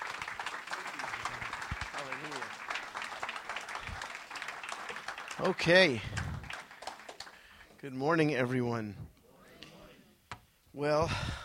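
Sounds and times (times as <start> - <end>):
audience applause at a morning church service: 0.0 - 7.8
speech: 5.4 - 6.2, 7.8 - 9.1, 10.8 - 11.4.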